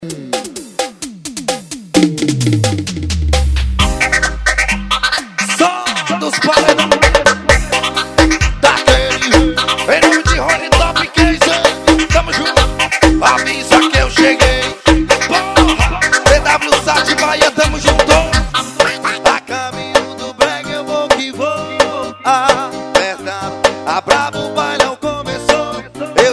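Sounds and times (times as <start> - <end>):
piseiro music: 0.0 - 26.3.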